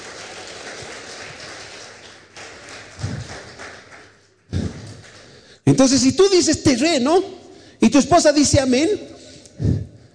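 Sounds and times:
audience applauding: 0:00.0 - 0:05.5
speech: 0:05.7 - 0:09.1.

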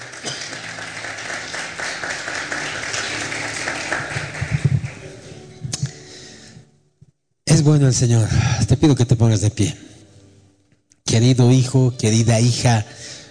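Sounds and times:
audience applause: 0:00.0 - 0:05.3
speech: 0:07.6 - 0:09.9, 0:11.1 - 0:13.1.

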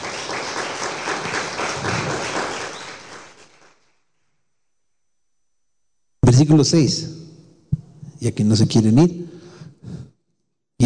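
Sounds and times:
crowd clapping: 0:00.0 - 0:04.0
speech: 0:06.4 - 0:07.2, 0:08.2 - 0:09.2.

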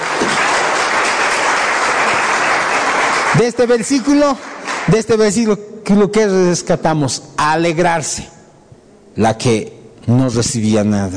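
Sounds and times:
applause: 0:00.0 - 0:05.4
speech: 0:03.4 - 0:08.4, 0:09.2 - 0:11.1.

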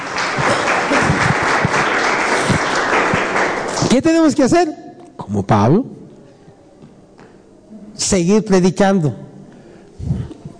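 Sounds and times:
audience applause: 0:00.0 - 0:03.9
speech: 0:03.9 - 0:06.0, 0:08.0 - 0:09.2.

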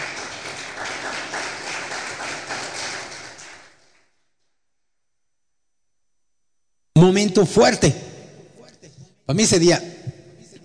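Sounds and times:
audience clapping: 0:00.0 - 0:04.1
speech: 0:07.0 - 0:08.1, 0:09.3 - 0:10.0.

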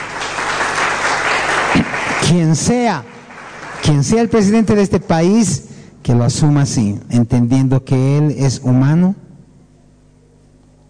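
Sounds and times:
audience applause: 0:00.0 - 0:04.3
speech: 0:02.3 - 0:03.2, 0:03.8 - 0:09.2.

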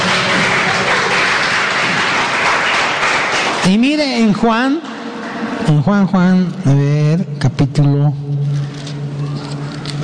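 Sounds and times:
audience applauding: 0:00.0 - 0:05.7
speech: 0:03.7 - 0:08.3.

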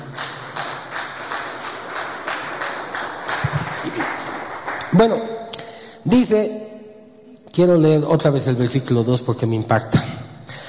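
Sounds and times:
audience applause: 0:00.0 - 0:05.1
speech: 0:04.9 - 0:05.4, 0:06.0 - 0:06.6, 0:07.6 - 0:10.0.

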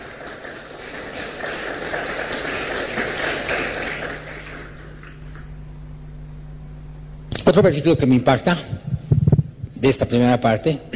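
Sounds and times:
audience applause: 0:00.0 - 0:05.3
speech: 0:07.5 - 0:08.9, 0:09.8 - 0:10.9.

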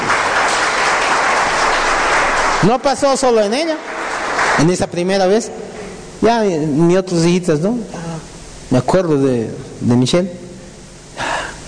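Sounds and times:
audience applause at a church gathering: 0:00.0 - 0:05.2
speech: 0:02.6 - 0:04.0, 0:04.6 - 0:08.0, 0:08.7 - 0:10.4.

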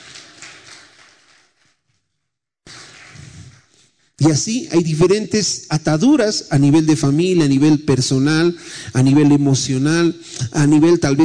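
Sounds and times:
audience applause: 0:00.0 - 0:01.5, 0:02.7 - 0:03.5
speech: 0:04.2 - 0:11.2.

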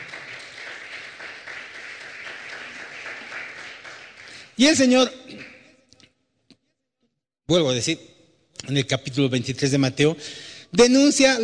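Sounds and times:
audience applause: 0:00.0 - 0:05.5
speech: 0:04.6 - 0:05.4, 0:07.5 - 0:08.1, 0:08.7 - 0:11.4.

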